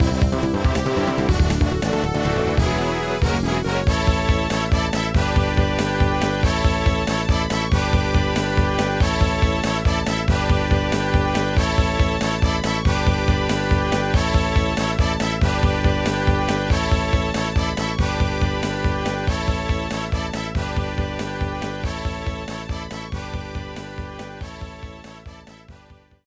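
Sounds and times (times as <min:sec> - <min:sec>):
fanfare: 0:00.0 - 0:25.3.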